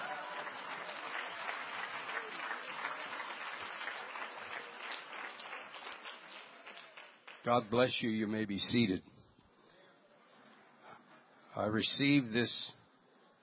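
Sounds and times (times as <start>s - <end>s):
audience clapping: 0.0s - 7.9s
speech: 7.4s - 9.1s, 11.6s - 12.8s.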